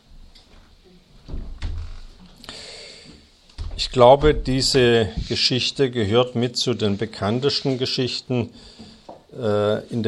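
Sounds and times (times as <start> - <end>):
windows being shut: 1.3 - 2.3, 3.6 - 5.6
speech: 3.8 - 10.0.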